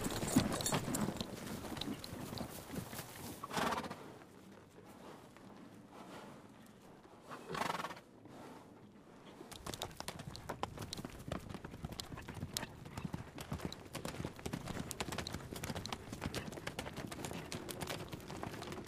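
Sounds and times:
horse hoofbeats clip-clopping: 0.0s - 4.0s, 9.5s - 18.8s.

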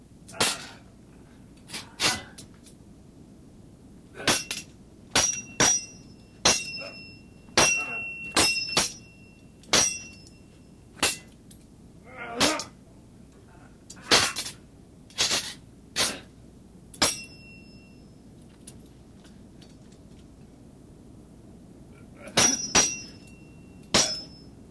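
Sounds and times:
two people sword fighting with cold weapons: 0.3s - 0.8s, 4.2s - 9.1s, 9.7s - 10.2s, 11.0s - 11.3s, 12.4s - 12.8s, 14.0s - 14.6s, 17.0s - 17.4s, 22.3s - 23.3s, 23.9s - 24.4s.

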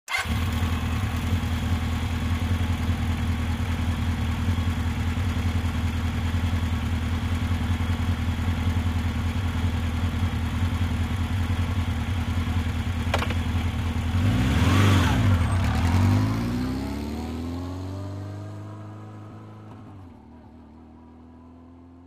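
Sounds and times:
motorcycle starting, idling and driving away: 0.1s - 22.0s.

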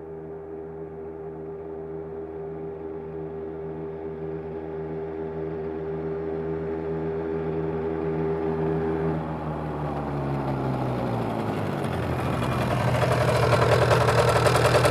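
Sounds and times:
motorcycle approaching and turning off: 3.7s - 14.8s.

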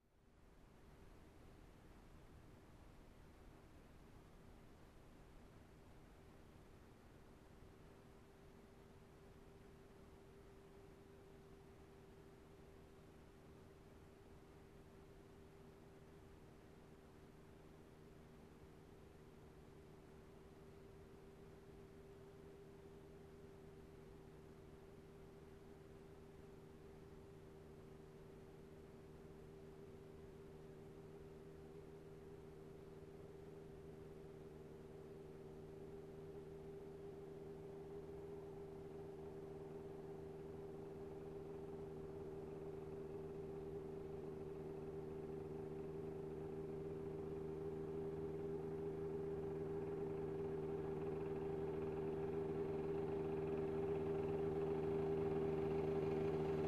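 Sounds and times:
motorcycle approaching and turning off: 30.3s - 56.6s.

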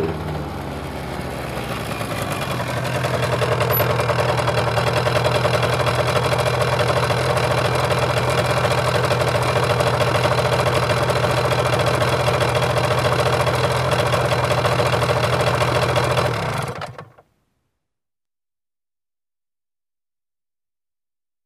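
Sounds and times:
motorcycle approaching and turning off: 0.0s - 17.1s.

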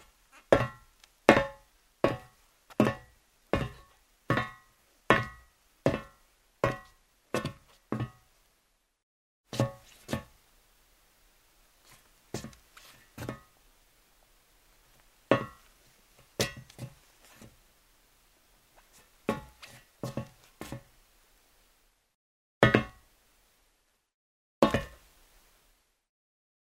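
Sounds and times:
footsteps in shoes on a metal floor: 0.0s - 8.3s, 9.5s - 10.4s, 11.9s - 13.5s, 15.3s - 15.7s, 16.4s - 17.6s, 18.8s - 20.9s.

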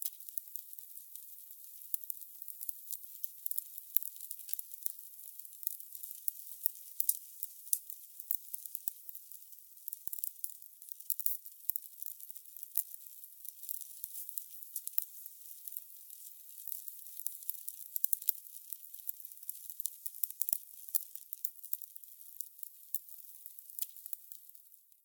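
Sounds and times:
candle fire burning and crackling: 0.0s - 25.0s.

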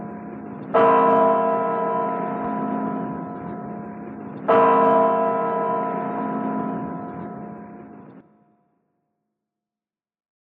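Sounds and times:
Kremlin clock chimes: 0.0s - 8.2s.

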